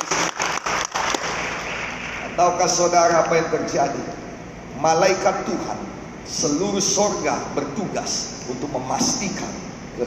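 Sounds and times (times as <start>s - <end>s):
crowd applause: 0.0s - 2.2s
speech: 2.4s - 10.0s.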